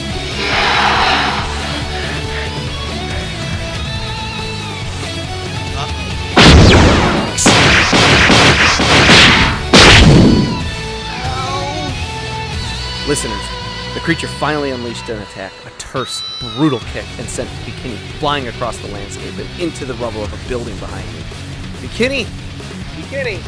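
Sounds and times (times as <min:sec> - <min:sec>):
heavy explosive blasts of firing fists with whooshing tails: 0:00.0 - 0:03.2, 0:06.4 - 0:10.6
sustained humming drone: 0:00.0 - 0:04.0
speech: 0:13.1 - 0:22.4, 0:23.0 - 0:23.4.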